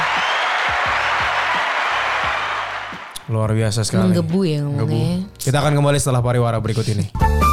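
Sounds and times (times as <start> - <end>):
talk show studio audience applauding: 0.0 - 3.2
speech: 3.3 - 7.4.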